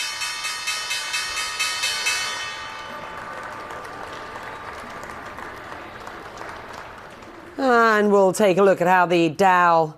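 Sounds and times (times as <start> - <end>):
stock exchange opening bell ringing: 0.0 - 5.9
speech: 7.6 - 9.9.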